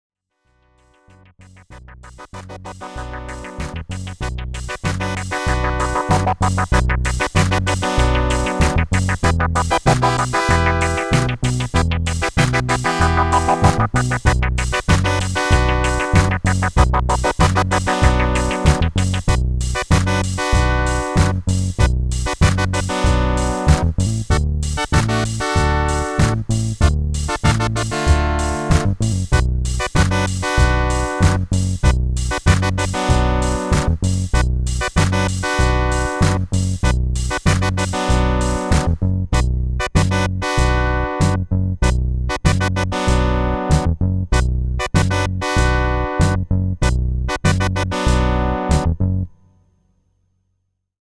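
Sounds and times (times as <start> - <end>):
Wersi CX2 disco music: 1.2 - 49.0.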